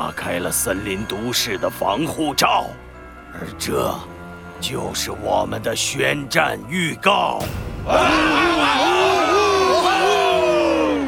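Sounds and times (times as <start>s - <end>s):
speech: 0.1s - 9.0s
crowd cheering and shouting: 7.8s - 11.0s.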